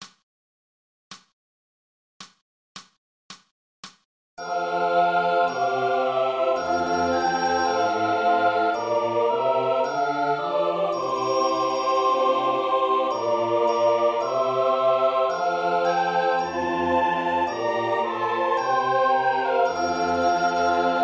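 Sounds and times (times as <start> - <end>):
triangle: 4.4 - 21.0.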